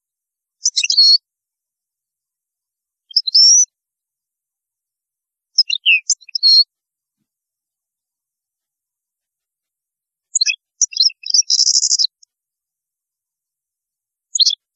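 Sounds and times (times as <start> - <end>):
European goldfinch song: 0.6 - 1.3, 3.0 - 3.8, 5.5 - 6.7, 10.3 - 12.3, 14.3 - 14.7.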